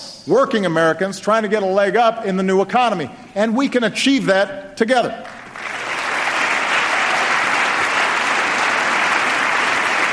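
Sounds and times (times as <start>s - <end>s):
speech: 0.2s - 5.4s
audience applause: 5.3s - 10.1s.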